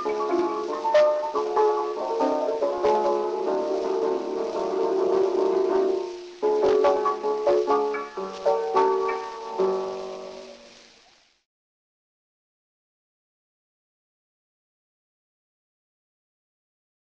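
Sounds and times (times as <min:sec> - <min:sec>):
gramophone playing: 0:00.0 - 0:10.8.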